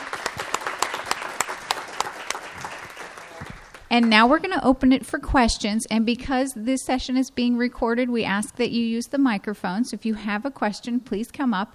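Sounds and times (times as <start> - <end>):
audience applause for speakers: 0.0 - 4.4
speech: 3.9 - 11.7.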